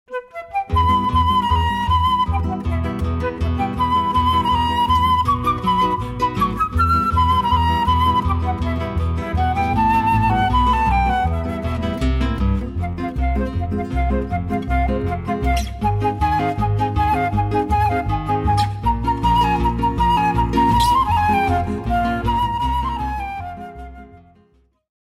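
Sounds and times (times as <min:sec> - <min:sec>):
flute: 0:00.1 - 0:24.8
guitar: 0:00.1 - 0:24.9
bass: 0:00.8 - 0:24.7.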